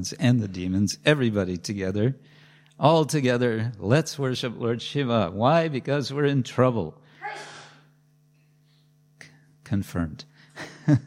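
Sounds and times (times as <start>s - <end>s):
speech: 0.0s - 7.5s, 9.7s - 11.0s
low electrical hum: 0.0s - 11.0s
sneeze: 7.2s - 7.8s.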